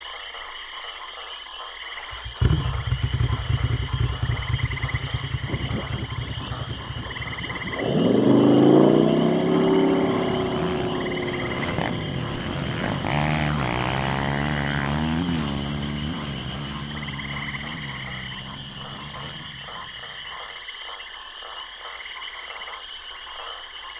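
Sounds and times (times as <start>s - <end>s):
region background ambience: 2.2s - 20.6s.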